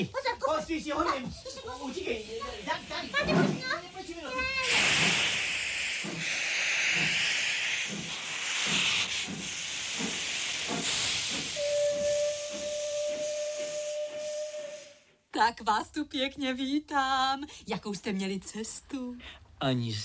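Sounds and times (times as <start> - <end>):
speech: 0.0 - 5.3, 15.4 - 20.0
steam locomotive hissing with escaping steam: 0.0 - 15.2
steam locomotive whistle: 4.6 - 15.2.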